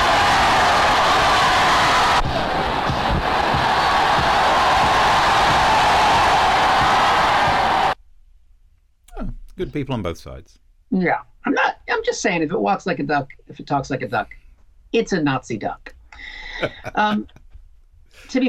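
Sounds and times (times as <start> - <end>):
large crowd cheering and roaring: 0.0 - 8.0
laughter: 9.6 - 10.4, 16.2 - 17.4
speech: 9.8 - 17.4, 18.2 - 18.4.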